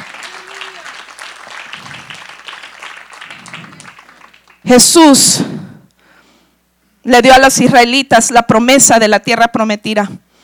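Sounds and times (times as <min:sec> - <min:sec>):
faint shouts and voices: 0:00.0 - 0:01.1
audience applauding: 0:00.0 - 0:04.8
speech: 0:04.7 - 0:05.6, 0:07.1 - 0:10.2.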